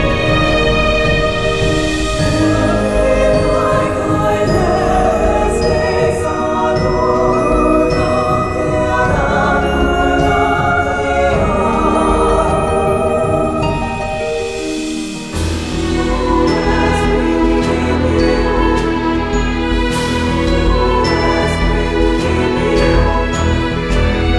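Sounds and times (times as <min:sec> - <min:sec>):
fast ambient music: 0:00.0 - 0:24.3.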